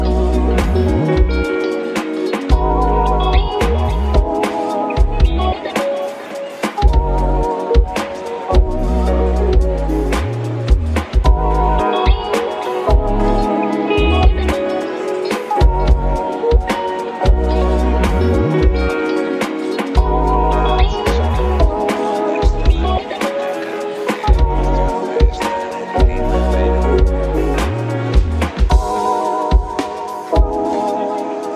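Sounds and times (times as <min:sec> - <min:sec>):
lofi music: 0:00.0 - 0:31.5.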